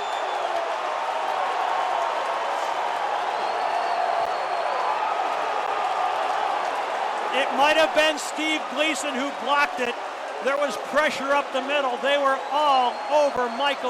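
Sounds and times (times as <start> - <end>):
huge stadium crowd cheering: 0.0 - 13.8
speech: 7.4 - 13.8.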